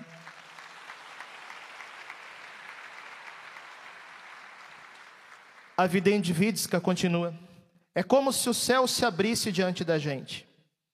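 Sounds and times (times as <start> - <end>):
crowd applause: 0.0 - 5.8
speech: 5.8 - 10.5.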